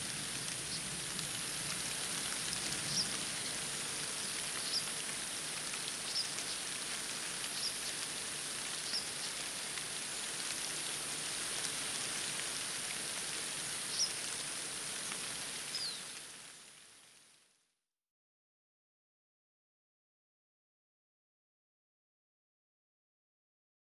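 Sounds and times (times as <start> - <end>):
rain in a forest: 0.0 - 17.9.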